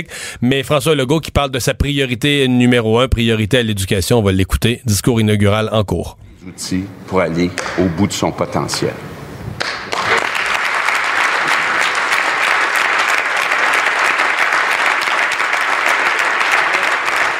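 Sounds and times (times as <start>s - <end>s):
speech: 0.0s - 9.9s
applause at a political speech: 9.6s - 17.3s.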